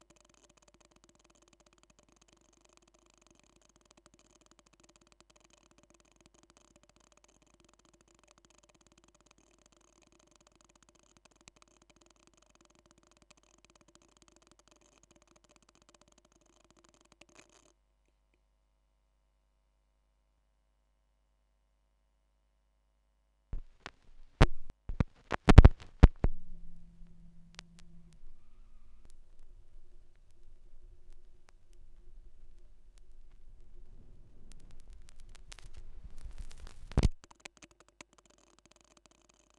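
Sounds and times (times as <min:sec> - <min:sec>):
45rpm vinyl record noise played in reverse: 0:23.6 - 0:37.2.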